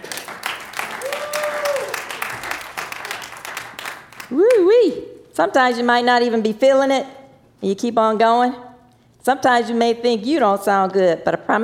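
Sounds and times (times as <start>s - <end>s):
crowd applause for a performer: 0.0s - 4.3s
speech: 5.4s - 11.6s.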